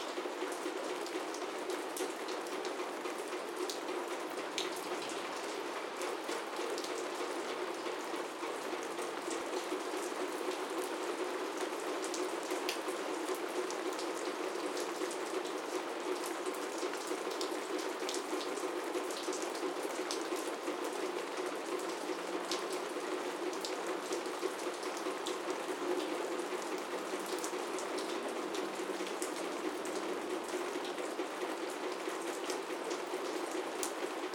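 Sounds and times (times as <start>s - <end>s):
rain on a roof heard from inside a loft: 0.0s - 34.3s.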